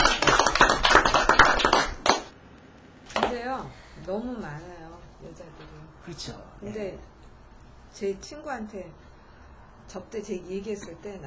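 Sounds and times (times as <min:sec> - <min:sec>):
small group clapping: 0:00.0 - 0:02.4, 0:03.1 - 0:03.4
speech: 0:04.1 - 0:07.2, 0:07.9 - 0:09.1, 0:09.9 - 0:11.2.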